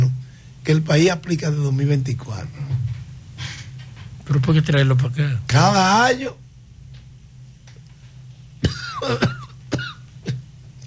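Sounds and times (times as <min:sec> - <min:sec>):
speech: 0:00.7 - 0:02.7, 0:04.3 - 0:06.4, 0:09.0 - 0:09.4
person coughing after briefly choking: 0:08.6 - 0:10.5
strained throat clearing: 0:08.6 - 0:10.5.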